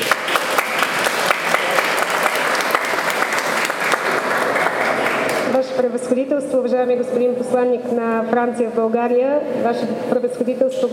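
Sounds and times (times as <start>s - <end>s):
audience applause: 0.0s - 5.5s
speech: 5.8s - 10.9s.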